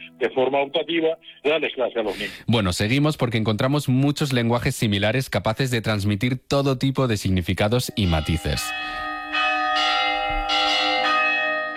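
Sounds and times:
church bells ringing: 0.0 - 0.7, 7.9 - 11.7
speech: 0.2 - 9.0.

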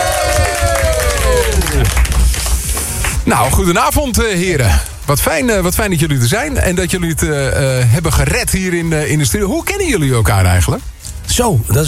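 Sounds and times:
audience cheering: 0.0 - 2.6
audience clapping: 0.0 - 3.7
speech: 3.3 - 11.8.

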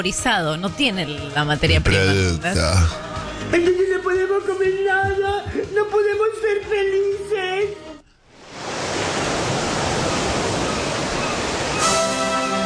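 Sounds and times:
speech: 0.0 - 7.8
recorded rain sound for sleeping: 8.4 - 12.5.

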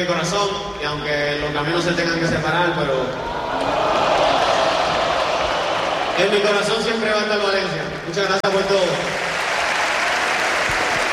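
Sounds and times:
speech: 0.0 - 3.9, 6.2 - 9.2
audience applause: 3.5 - 7.0, 8.4 - 11.1.

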